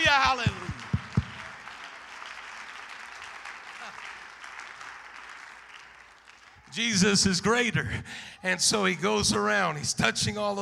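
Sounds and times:
audience clapping hands: 0.0s - 7.6s
speech: 6.8s - 10.5s.

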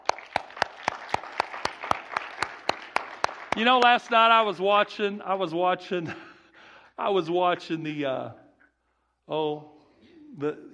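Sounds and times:
people clapping their hands: 0.0s - 4.6s
speech: 3.6s - 6.3s, 7.0s - 8.4s, 9.3s - 10.7s.

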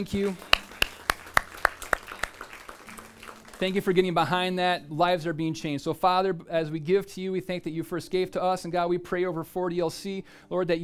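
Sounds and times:
speech: 0.0s - 0.5s, 3.6s - 10.8s
audience clapping: 0.0s - 4.4s.

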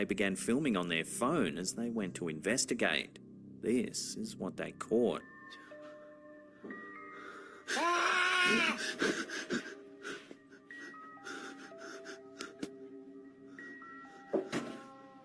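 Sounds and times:
speech: 0.0s - 5.6s, 7.7s - 9.7s
man screaming inside a house: 7.8s - 8.8s.

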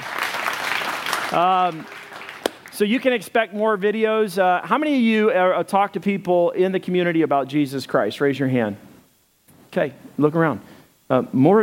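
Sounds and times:
audience applause: 0.0s - 2.7s
speech: 1.3s - 2.1s, 2.8s - 8.9s, 9.8s - 11.6s.

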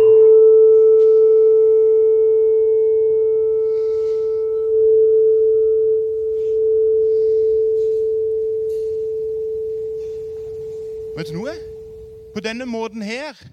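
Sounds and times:
tuning fork resonating: 0.0s - 13.0s
low rumble: 5.0s - 12.9s
speech: 12.4s - 13.5s.

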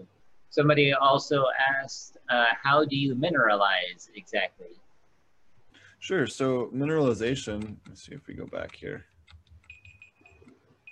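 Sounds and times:
speech: 0.0s - 4.8s, 6.0s - 9.1s
electronic alarm beeping: 9.6s - 10.9s.

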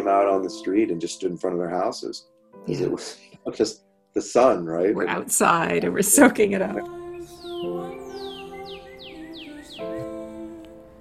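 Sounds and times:
speech: 0.1s - 8.0s
birds singing outdoors: 6.1s - 10.9s.

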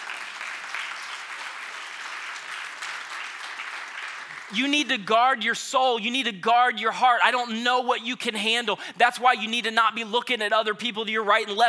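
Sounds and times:
audience clapping: 0.0s - 5.1s
speech: 4.5s - 11.6s.

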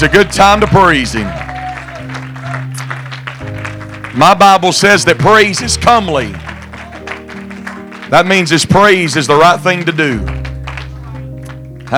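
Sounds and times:
speech: 0.0s - 1.4s, 4.2s - 6.5s, 8.1s - 10.5s
audience clapping hands in praise: 0.0s - 11.9s.

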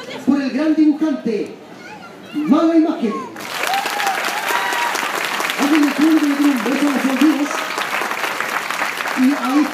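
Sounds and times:
speech: 0.5s - 1.7s, 2.3s - 3.4s, 5.6s - 7.6s, 9.2s - 9.7s
audience applause: 3.4s - 9.7s.

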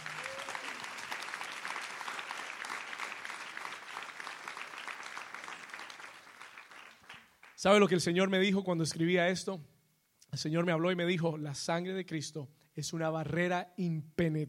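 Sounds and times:
loud audience applause: 0.0s - 7.6s
speech: 7.6s - 9.7s, 10.4s - 14.4s.

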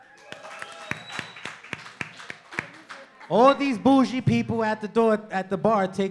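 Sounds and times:
audience clapping in a steady even rhythm: 0.0s - 3.6s
speech: 3.3s - 6.1s.

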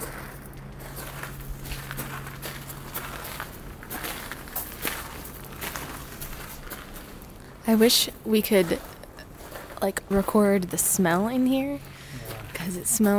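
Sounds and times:
footsteps between rows of casks in a damp cellar: 0.0s - 13.1s
speech: 7.7s - 8.9s, 9.8s - 13.1s.

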